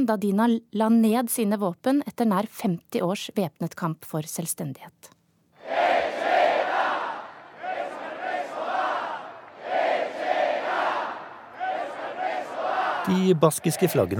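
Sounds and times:
speech: 0.0s - 6.0s, 13.1s - 14.1s
large crowd cheering and chanting at a rally: 5.6s - 14.1s.

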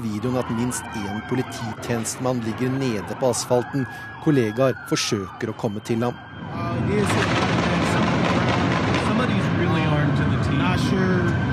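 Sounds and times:
people's voices: 0.0s - 11.3s
speech: 0.1s - 7.8s
rapid gunshots: 7.2s - 9.4s.

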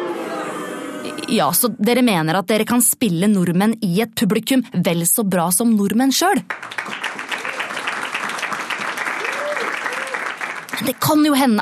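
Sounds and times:
speech: 1.3s - 7.1s, 10.8s - 11.5s
audience clapping hands: 6.4s - 11.5s.

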